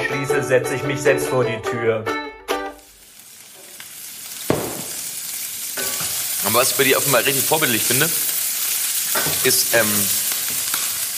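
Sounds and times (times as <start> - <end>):
speech: 0.1 - 2.2, 6.4 - 8.3, 9.2 - 10.2
carbonara sizzling in a hot pan: 2.8 - 11.1.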